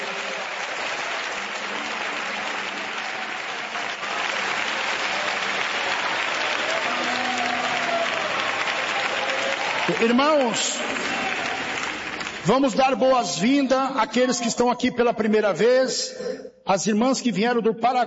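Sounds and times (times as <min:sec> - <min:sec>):
audience clapping hands: 0:00.0 - 0:13.7
speech: 0:09.9 - 0:11.4, 0:12.4 - 0:18.0.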